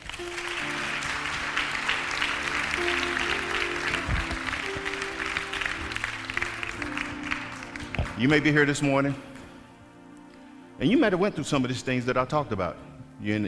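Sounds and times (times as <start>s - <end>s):
audience clapping: 0.0s - 9.6s
organ or keyboard chords: 0.0s - 13.4s
speech: 8.2s - 9.3s, 10.8s - 13.4s.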